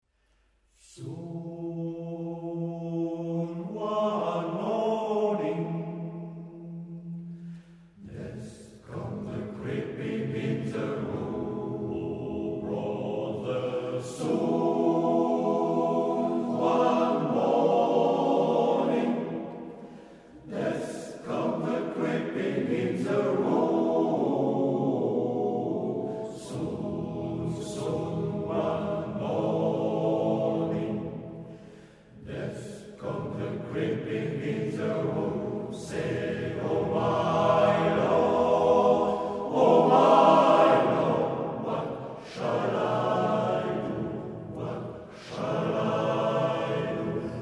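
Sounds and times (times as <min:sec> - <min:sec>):
music: 0:00.0 - 0:47.4.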